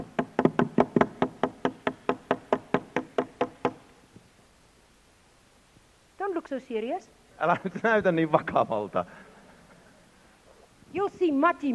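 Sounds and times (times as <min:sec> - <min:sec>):
hammering on a roof: 0:00.0 - 0:03.8
speech: 0:06.5 - 0:09.3, 0:11.0 - 0:11.7.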